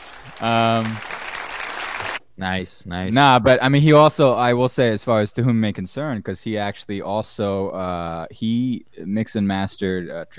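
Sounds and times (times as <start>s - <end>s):
applause: 0.0s - 2.2s
speech: 0.4s - 1.1s, 2.4s - 10.3s.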